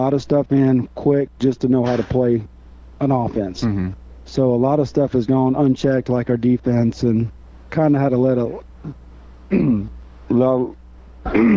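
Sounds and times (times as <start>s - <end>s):
speech: 0.0s - 11.5s
person with sinus trouble and allergies clearing throat: 3.6s - 4.0s, 8.8s - 9.9s, 11.2s - 11.5s.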